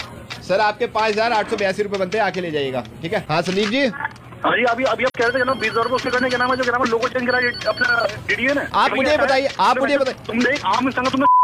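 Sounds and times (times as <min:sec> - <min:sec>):
speech: 0:00.5 - 0:11.3
melodic phone ringtone: 0:05.2 - 0:08.1.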